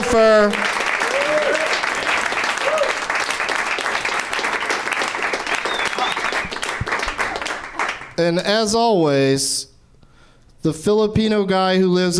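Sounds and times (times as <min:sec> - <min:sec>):
audience applause: 0:00.0 - 0:08.2
speech: 0:00.1 - 0:00.7, 0:08.2 - 0:09.7, 0:10.6 - 0:12.1.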